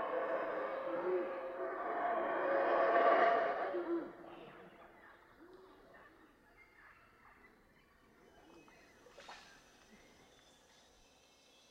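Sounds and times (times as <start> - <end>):
howler calls: 0.0 - 4.4.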